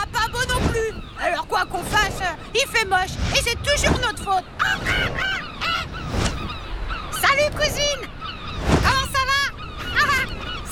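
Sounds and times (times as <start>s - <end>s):
gull calls: 0.0s - 10.6s
speech: 1.7s - 5.4s, 7.4s - 8.1s.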